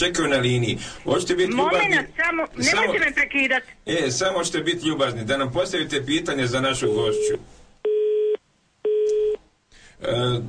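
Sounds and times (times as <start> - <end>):
speech: 0.0 - 7.6, 10.0 - 10.4
telephone busy tone after caller hung up: 7.1 - 9.4.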